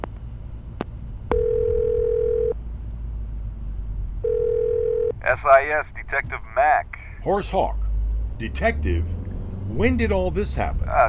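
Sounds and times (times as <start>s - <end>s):
low rumbling hum: 0.0s - 11.0s
telephone ringback tones: 1.3s - 2.6s, 4.2s - 5.1s
speech: 5.4s - 7.8s, 8.4s - 11.0s.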